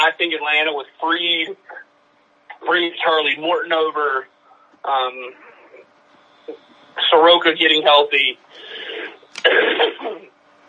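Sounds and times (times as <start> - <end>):
speech: 0.2 - 1.8, 2.6 - 5.5, 6.5 - 10.3
person sneezing: 8.9 - 10.3.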